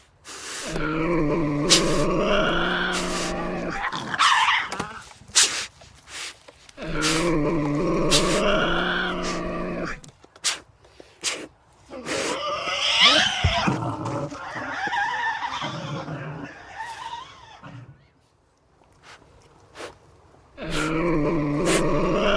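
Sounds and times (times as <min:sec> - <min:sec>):
Tasmanian devil vocalizing: 0:00.6 - 0:05.1, 0:06.8 - 0:10.1, 0:11.9 - 0:18.1, 0:20.6 - 0:22.3.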